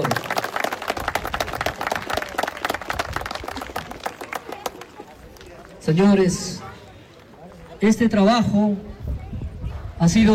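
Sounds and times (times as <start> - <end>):
crowd applause: 0.0 - 5.8
speech: 5.8 - 6.7, 7.8 - 8.9, 10.0 - 10.3.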